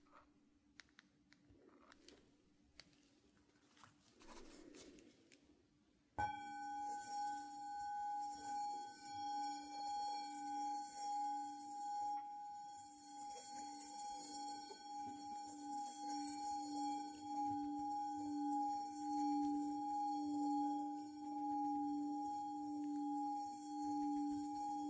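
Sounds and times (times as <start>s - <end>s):
soft ear brushing: 3.0s - 5.2s
Tibetan bowl struck and ringing: 6.2s - 24.8s.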